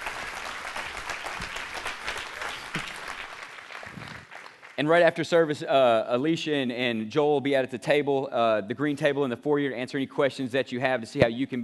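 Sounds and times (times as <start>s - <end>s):
audience applause, hand clapping: 0.0s - 5.1s
speech: 4.8s - 11.6s.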